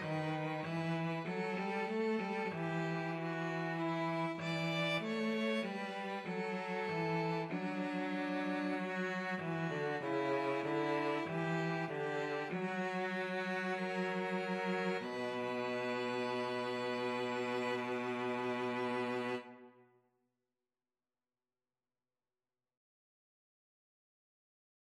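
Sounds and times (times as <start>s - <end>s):
cello: 0.0s - 19.9s
violin: 0.0s - 19.9s.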